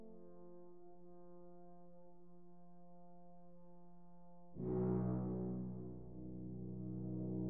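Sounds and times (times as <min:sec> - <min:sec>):
brass ensemble fanfare: 0:04.6 - 0:07.4.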